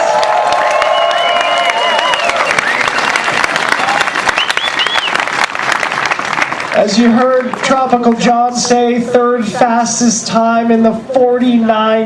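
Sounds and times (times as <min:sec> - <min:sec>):
whoops and cheers: 0:00.0 - 0:03.5
crowd applause: 0:00.0 - 0:08.3
whistles: 0:00.8 - 0:03.5, 0:04.3 - 0:05.2
speech: 0:06.8 - 0:12.0.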